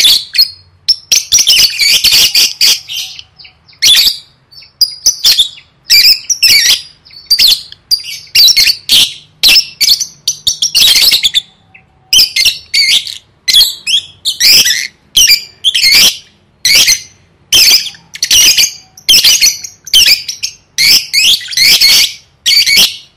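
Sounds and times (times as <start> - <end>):
lovebird screeching: 0.0 - 23.1.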